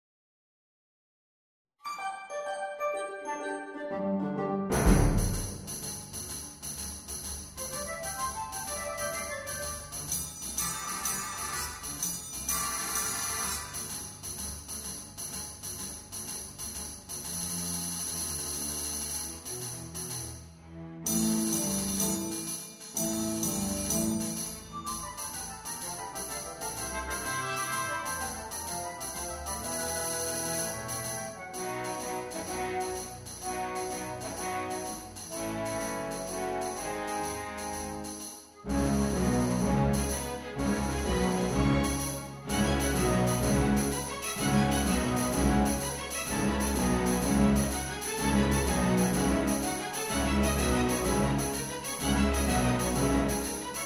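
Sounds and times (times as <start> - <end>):
orchestral accompaniment: 1.8 - 53.8.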